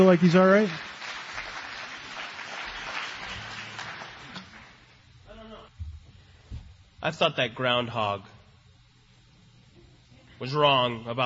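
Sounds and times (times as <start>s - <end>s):
speech: 0.0s - 0.9s, 7.0s - 8.3s, 10.4s - 11.2s
audience round of applause: 0.0s - 4.9s.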